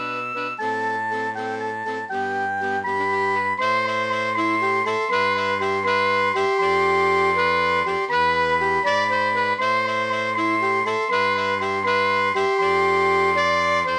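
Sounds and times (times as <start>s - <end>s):
MIDI brass instruments playing medieval music: 0.0s - 13.9s.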